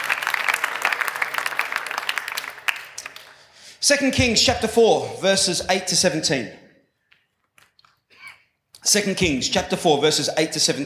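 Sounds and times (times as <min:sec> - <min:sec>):
audience applause: 0:00.0 - 0:03.5
speech: 0:03.8 - 0:06.6, 0:08.9 - 0:10.8.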